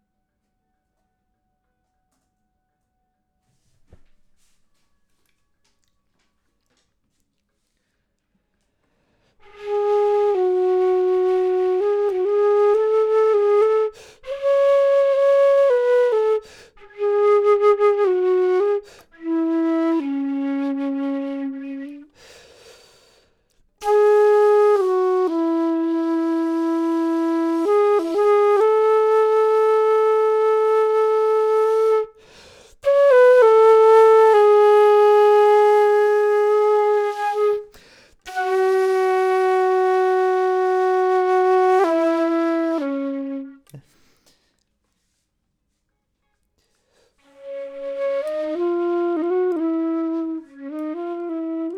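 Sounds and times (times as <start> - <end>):
flute: 9.4 - 22.2, 23.8 - 44.0, 47.1 - 51.7.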